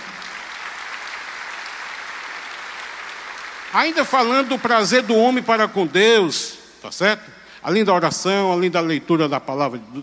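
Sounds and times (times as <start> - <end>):
audience applause: 0.0 - 6.0
speech: 3.7 - 10.0.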